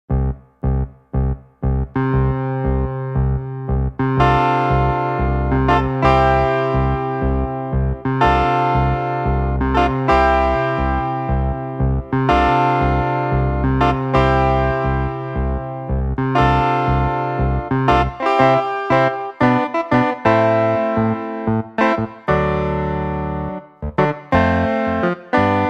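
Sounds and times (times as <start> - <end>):
piano: 0.1 - 25.6.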